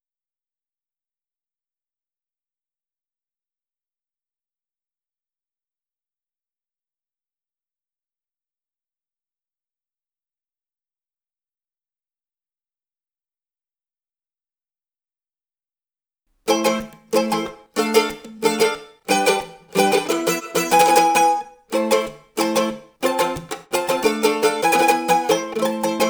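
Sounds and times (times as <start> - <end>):
ballet music on mandolin: 16.5 - 26.0.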